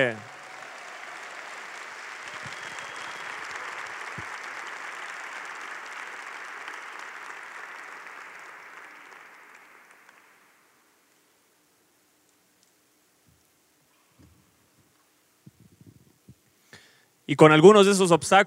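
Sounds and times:
speech: 0.0s - 0.3s, 17.3s - 18.4s
loud audience applause: 0.0s - 10.9s.

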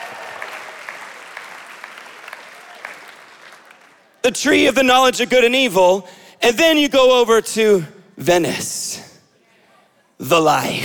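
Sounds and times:
crowd applauding: 0.0s - 4.2s
speech: 4.2s - 8.9s, 10.2s - 10.8s.

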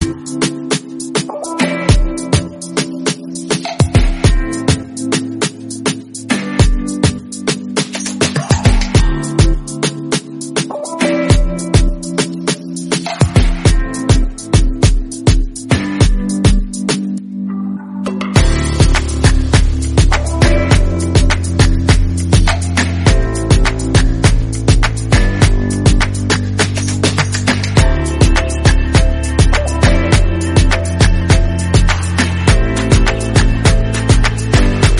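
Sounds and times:
instrumental music: 0.0s - 34.9s.

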